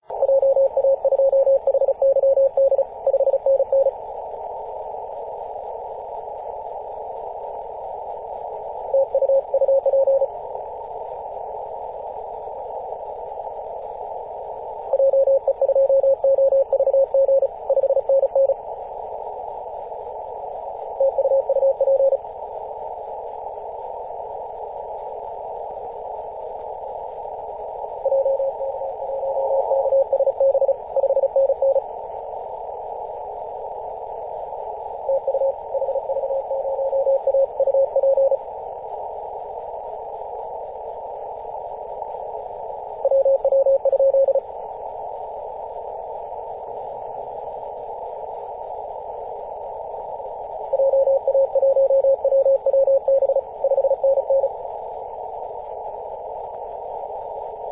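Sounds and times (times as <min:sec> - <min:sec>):
CW morse code signal at 18.071MHz: 0:00.1 - 0:04.0, 0:08.9 - 0:10.3, 0:14.9 - 0:18.6, 0:21.0 - 0:22.2, 0:28.0 - 0:31.8, 0:35.1 - 0:38.4, 0:43.0 - 0:44.4, 0:50.7 - 0:54.5.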